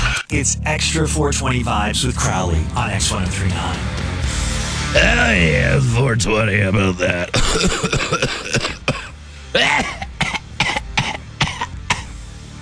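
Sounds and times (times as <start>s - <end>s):
coughing fit: 0.0s - 0.3s, 5.0s - 12.2s
speech: 0.3s - 4.1s, 4.9s - 10.0s.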